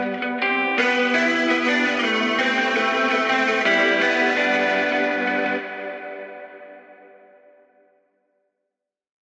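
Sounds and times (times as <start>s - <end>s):
lofi music: 0.0s - 7.4s.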